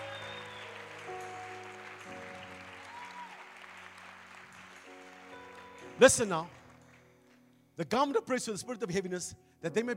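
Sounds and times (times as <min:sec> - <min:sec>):
large crowd clapping hands: 0:00.0 - 0:07.5
speech: 0:06.0 - 0:06.6, 0:07.8 - 0:09.9.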